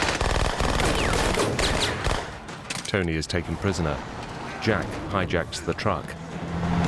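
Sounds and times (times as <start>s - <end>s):
machine gun fire in a firefight: 0.0s - 2.3s
speech: 2.9s - 6.7s.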